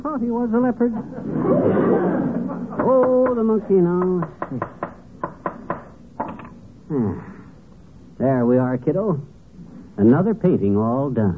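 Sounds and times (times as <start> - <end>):
speech: 0.0 - 4.8, 6.9 - 7.3, 8.2 - 9.3, 10.0 - 11.3
laughter: 0.8 - 4.0
hammering a nail into a wooden frame: 4.0 - 6.0.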